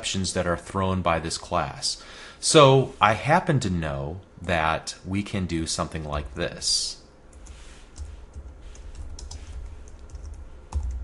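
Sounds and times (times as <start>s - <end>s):
speech: 0.0s - 7.0s
typing on a computer keyboard while writing code: 7.3s - 11.0s.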